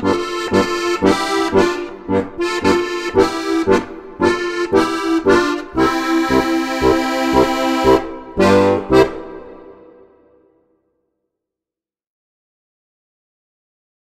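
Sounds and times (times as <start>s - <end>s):
harmonica: 0.0s - 10.2s.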